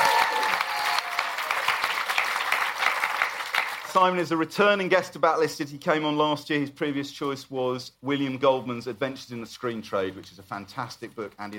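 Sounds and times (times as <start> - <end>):
audience applause: 0.0 - 4.0
speech: 4.0 - 11.5.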